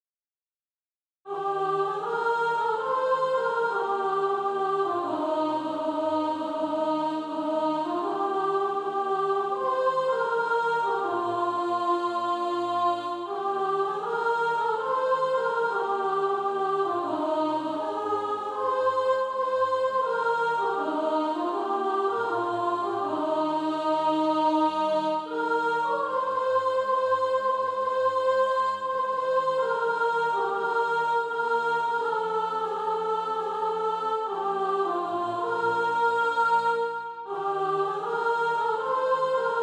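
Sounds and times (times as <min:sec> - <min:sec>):
soprano singing practice music: 0:01.3 - 0:39.6.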